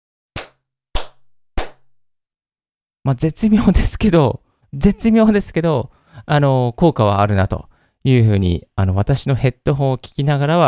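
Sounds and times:
hand claps in room with futon damping: 0:00.4 - 0:01.9
speech: 0:03.1 - 0:10.6.

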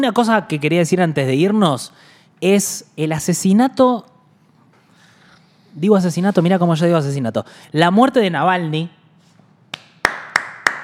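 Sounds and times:
speech: 0:00.0 - 0:04.1, 0:05.8 - 0:09.0
hand clapping: 0:09.7 - 0:10.8.

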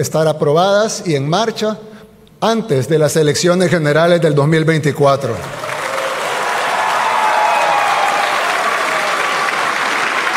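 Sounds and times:
speech: 0:00.0 - 0:05.8
sustained applause from a large crowd in an assembly hall: 0:05.4 - 0:10.3.

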